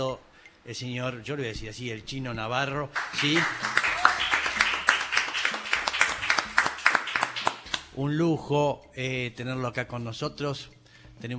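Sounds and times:
speech: 0:00.0 - 0:03.8, 0:08.0 - 0:11.3
applause: 0:03.0 - 0:08.0.

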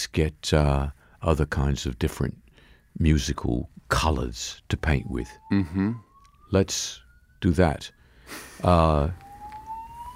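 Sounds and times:
speech: 0:00.0 - 0:02.4, 0:03.0 - 0:09.2
fire alarm: 0:04.8 - 0:10.1.

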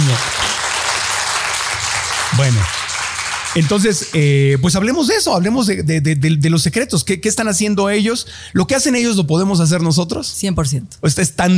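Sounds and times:
audience applause: 0:00.0 - 0:04.8
speech: 0:02.4 - 0:02.8, 0:03.6 - 0:11.5.

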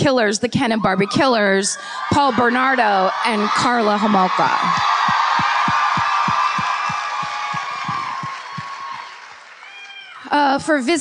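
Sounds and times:
speech: 0:00.0 - 0:05.0, 0:10.3 - 0:10.9
live audience cheering and applause: 0:00.9 - 0:10.3
rhythmic low thumps: 0:04.6 - 0:08.8.

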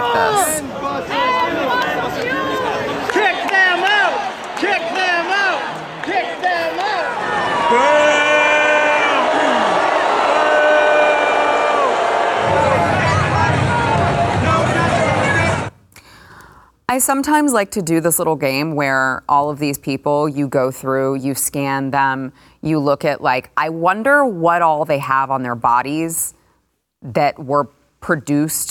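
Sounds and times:
crowd booing: 0:00.0 - 0:15.7
speech: 0:00.1 - 0:01.2, 0:16.9 - 0:26.4, 0:27.0 - 0:28.6.

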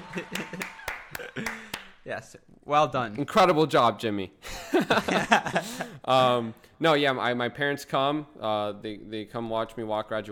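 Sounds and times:
laughter: 0:00.0 - 0:01.8, 0:04.4 - 0:06.0
congratulations applause sound effect: 0:00.0 - 0:02.0
speech: 0:00.1 - 0:00.6, 0:02.1 - 0:10.3.

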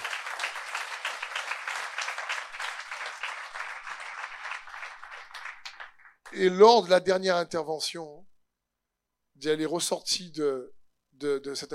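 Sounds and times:
large crowd applauding and cheering: 0:00.0 - 0:06.2
speech: 0:06.3 - 0:08.3, 0:09.4 - 0:11.7.

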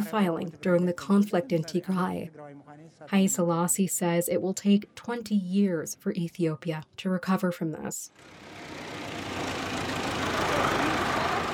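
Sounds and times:
speech: 0:00.1 - 0:09.5
large truck arriving bringing clean water for refugees: 0:08.2 - 0:11.5.

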